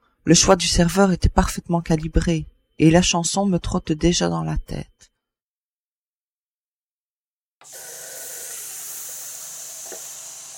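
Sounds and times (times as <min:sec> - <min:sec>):
speech: 0:00.2 - 0:05.0
shower water running: 0:07.6 - 0:10.5.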